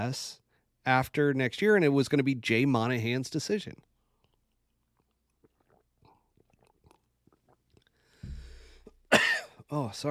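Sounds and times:
speech: 0:00.0 - 0:03.9, 0:09.7 - 0:10.0
person drinking water: 0:03.9 - 0:09.2.

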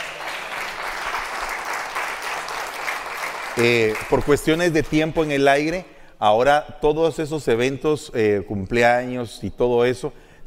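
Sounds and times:
crowd applause: 0:00.0 - 0:04.5
speech: 0:03.6 - 0:10.2.

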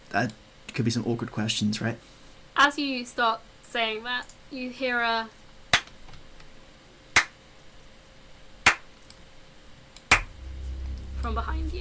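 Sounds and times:
speech: 0:00.1 - 0:05.4, 0:11.2 - 0:11.7
slow hand claps: 0:07.2 - 0:07.4.

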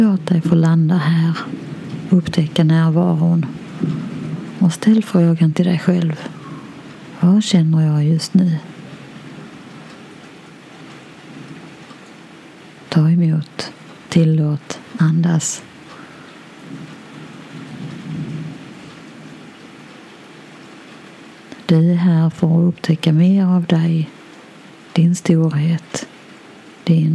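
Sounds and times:
speech: 0:00.0 - 0:06.4, 0:07.2 - 0:08.8, 0:13.0 - 0:15.7, 0:21.7 - 0:24.2, 0:25.0 - 0:26.1, 0:26.9 - 0:27.1
thunder rumbling: 0:00.0 - 0:09.9, 0:14.9 - 0:20.0
rain pattering: 0:00.0 - 0:27.1.

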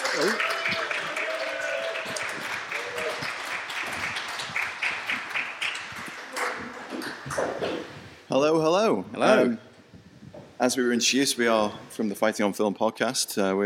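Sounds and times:
audience applause: 0:00.0 - 0:07.6
speech: 0:00.2 - 0:00.8, 0:08.4 - 0:09.6, 0:10.6 - 0:13.6.

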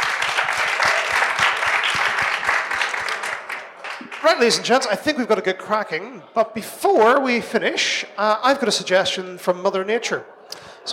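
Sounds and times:
round of applause: 0:00.0 - 0:04.8
speech: 0:04.4 - 0:10.9.

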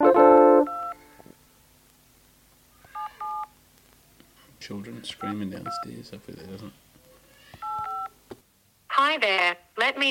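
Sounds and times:
speech: 0:04.6 - 0:06.8, 0:09.2 - 0:10.0
telephone dialing tones: 0:07.6 - 0:08.1.

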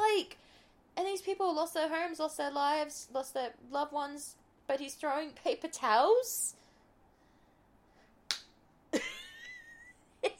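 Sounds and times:
speech: 0:01.2 - 0:06.6
hand slapping face in a face-palm: 0:08.3 - 0:08.6.

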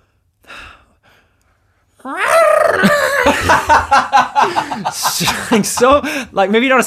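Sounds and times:
intake of breath: 0:00.0 - 0:01.9
person imitating a goat with a wavering cry: 0:02.0 - 0:03.3
laughter: 0:02.8 - 0:06.2
speech: 0:02.8 - 0:06.8.

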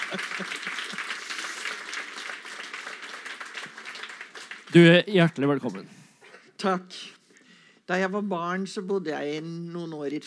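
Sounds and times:
laughter: 0:00.0 - 0:01.6
audience applause: 0:00.0 - 0:05.6
speech: 0:00.1 - 0:01.0, 0:04.7 - 0:06.0, 0:06.6 - 0:07.2, 0:07.9 - 0:10.2.

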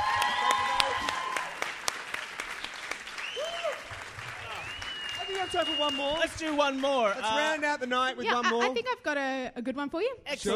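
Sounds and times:
round of applause: 0:00.0 - 0:08.1
speech: 0:05.5 - 0:10.5.

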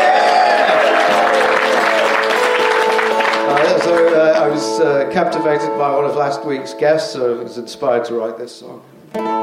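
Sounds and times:
crowd voices: 0:00.0 - 0:04.5
audience applause welcoming a comedic songwriter at a live comedy show: 0:00.0 - 0:04.7
speech: 0:04.6 - 0:09.3.

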